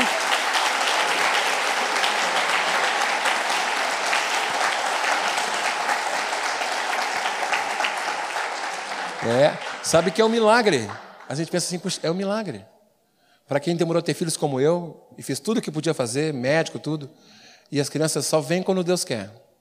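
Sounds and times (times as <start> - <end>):
audience applause: 0.0 - 11.8
speech: 9.3 - 12.7, 13.5 - 19.5.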